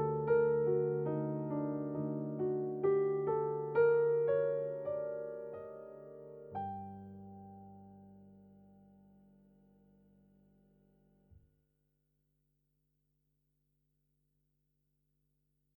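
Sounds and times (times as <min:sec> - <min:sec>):
piano: 0:00.0 - 0:11.4.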